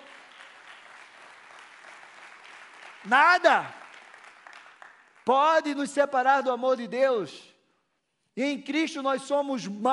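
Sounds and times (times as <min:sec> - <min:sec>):
audience applause: 0:00.0 - 0:05.3
speech: 0:03.0 - 0:03.8, 0:05.3 - 0:07.5, 0:08.4 - 0:09.9.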